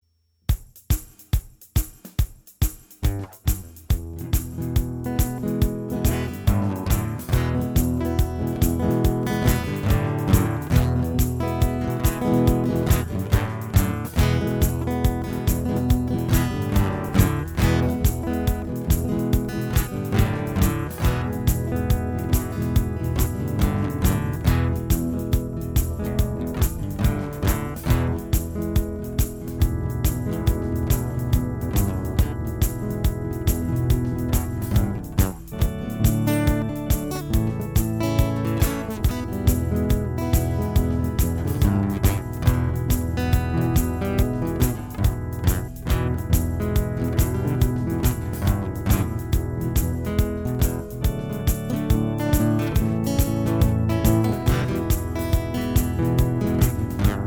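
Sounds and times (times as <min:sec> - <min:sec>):
acoustic guitar: 0:03.0 - 0:57.2.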